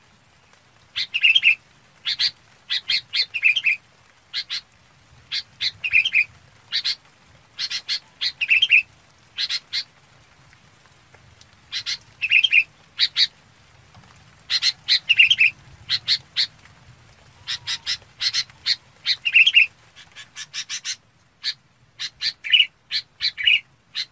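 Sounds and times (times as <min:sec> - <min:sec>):
Red-whiskered bulbul calls: 0:01.0 - 0:04.7, 0:05.3 - 0:07.0, 0:07.6 - 0:09.9, 0:11.7 - 0:13.3, 0:14.5 - 0:16.5, 0:17.4 - 0:24.1.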